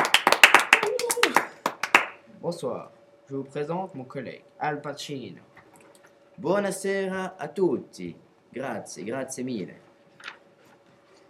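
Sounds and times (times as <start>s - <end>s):
audience clapping: 0.0s - 2.2s
speech: 2.4s - 5.5s, 6.4s - 9.8s.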